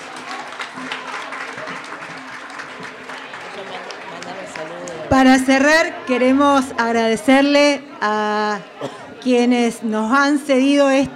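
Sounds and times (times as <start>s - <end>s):
audience applause: 0.0s - 6.1s
speech: 5.2s - 11.1s.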